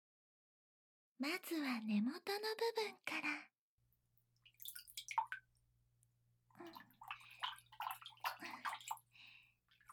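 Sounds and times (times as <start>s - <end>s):
speech: 1.2s - 3.5s, 6.6s - 6.9s
warm bath water rinsing over a body during washing: 4.4s - 5.6s, 6.5s - 9.9s.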